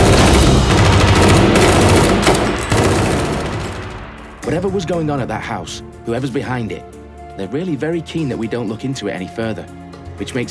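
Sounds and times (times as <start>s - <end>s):
gunfire volley as a team opens fire: 0.0s - 4.6s
speech: 4.5s - 10.4s.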